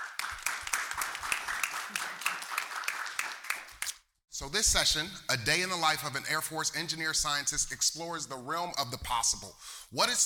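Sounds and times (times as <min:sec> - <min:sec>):
audience applause for panel: 0:00.0 - 0:03.8
speech: 0:04.4 - 0:10.2.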